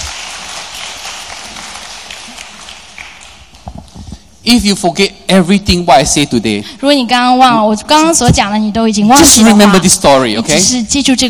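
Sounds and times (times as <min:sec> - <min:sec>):
audience clapping: 0:00.0 - 0:04.0
speech: 0:04.4 - 0:11.2.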